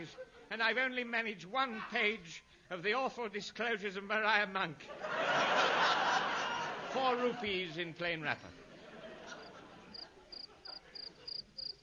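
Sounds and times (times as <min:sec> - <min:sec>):
laughter: 0:00.0 - 0:00.8, 0:04.8 - 0:11.7
speech: 0:00.0 - 0:06.2, 0:06.9 - 0:08.6
cricket chirping: 0:09.4 - 0:11.8.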